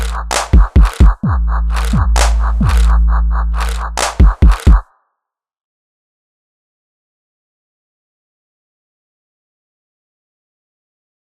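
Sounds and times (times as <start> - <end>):
music beat: 0.0 - 4.9.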